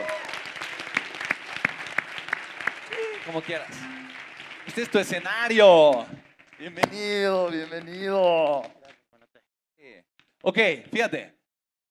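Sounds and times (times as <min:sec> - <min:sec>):
audience applause: 0:00.0 - 0:08.8
speech: 0:03.3 - 0:04.0, 0:04.7 - 0:08.8, 0:10.4 - 0:11.4.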